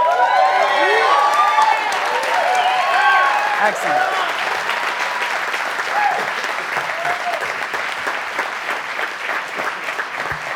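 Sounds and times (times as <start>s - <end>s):
audience whooping and hollering to welcome guests on stage: 0.0s - 7.6s
audience cheering and clapping: 0.0s - 10.5s
speech: 3.6s - 4.2s.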